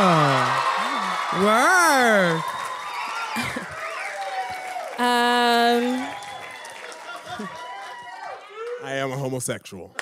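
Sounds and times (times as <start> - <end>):
audience cheering: 0.0 - 9.1
speech: 1.3 - 2.6, 8.8 - 10.0.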